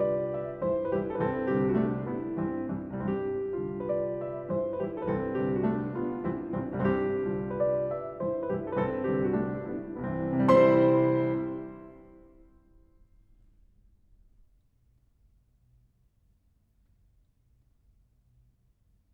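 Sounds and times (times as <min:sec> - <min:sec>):
piano nocturne in F-sharp minor: 0:00.0 - 0:14.2.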